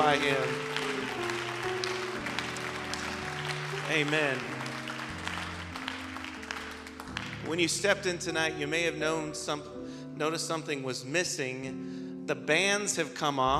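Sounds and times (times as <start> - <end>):
audience clapping: 0.0 - 8.1
held organ chords: 0.0 - 11.9
speech: 0.1 - 0.8, 3.9 - 4.5, 7.4 - 13.5.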